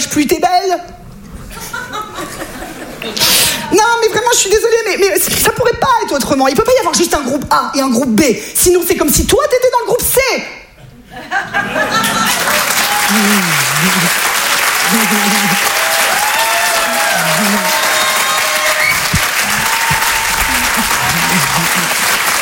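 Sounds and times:
speech: 0.2s - 1.0s, 3.0s - 10.6s, 11.2s - 12.3s, 13.1s - 14.3s, 14.9s - 15.8s
scattered audience laughter: 1.4s - 3.2s, 10.8s - 15.9s, 16.7s - 22.4s
audience applause: 11.8s - 22.4s.

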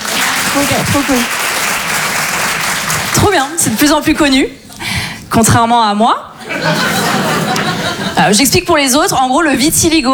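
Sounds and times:
audience applause: 0.0s - 3.6s
speech: 0.6s - 1.4s, 3.2s - 4.6s, 5.3s - 7.3s, 8.2s - 10.1s
laughter: 6.4s - 8.3s.

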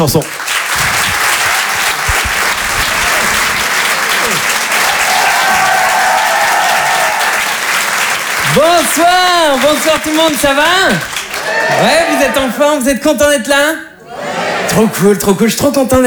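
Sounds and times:
speech: 0.0s - 0.5s, 8.5s - 13.9s, 14.7s - 16.0s
audience applause: 0.0s - 12.6s.

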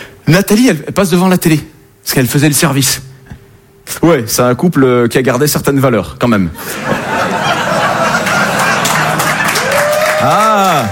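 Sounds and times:
speech: 0.3s - 3.1s, 3.9s - 7.4s
crowd voices and chuckles: 6.6s - 9.8s
audience applause: 7.1s - 10.9s.

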